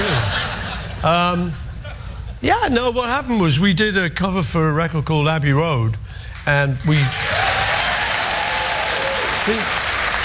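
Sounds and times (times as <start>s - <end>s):
laughter: 0.0s - 1.1s
speech: 1.0s - 1.6s, 2.4s - 7.3s, 9.5s - 9.8s
audience applause: 7.0s - 10.2s.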